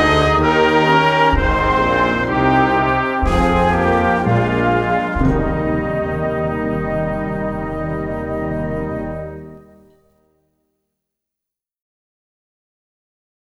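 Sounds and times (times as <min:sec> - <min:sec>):
percussion: 0:00.0 - 0:09.3
choir singing a chorale: 0:00.0 - 0:09.8.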